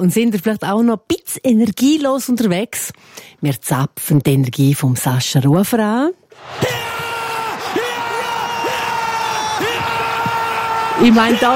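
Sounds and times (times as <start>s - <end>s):
speech: 0.0s - 6.8s, 11.0s - 11.5s
crowd cheering: 6.3s - 11.5s.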